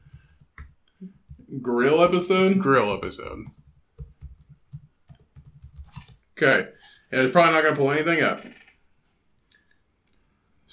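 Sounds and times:
typing on a computer keyboard: 0.0s - 2.4s, 3.0s - 6.2s
speech: 1.0s - 3.6s, 6.4s - 8.6s.

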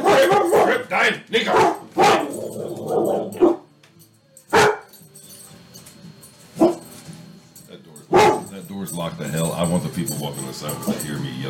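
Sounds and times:
dog barking: 0.0s - 3.7s, 4.5s - 5.0s, 6.6s - 6.9s, 8.1s - 8.6s
speech: 8.9s - 11.4s.

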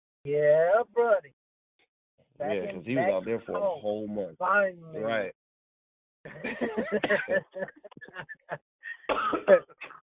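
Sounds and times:
speech: 0.2s - 1.4s, 2.4s - 5.4s, 6.2s - 9.9s
laughter: 6.3s - 10.0s
man coughing from allergies: 6.8s - 8.2s, 8.9s - 10.0s.

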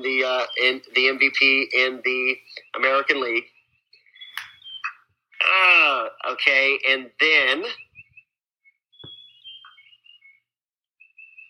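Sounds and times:
speech: 0.0s - 3.5s, 5.5s - 7.8s
birds chirping outdoors: 0.0s - 11.4s.

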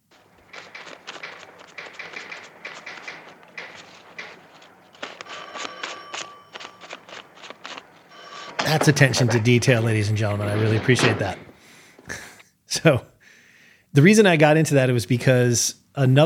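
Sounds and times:
counting out ten paper bills: 0.0s - 11.0s
speech: 8.7s - 11.5s, 12.8s - 13.1s, 14.0s - 16.2s.

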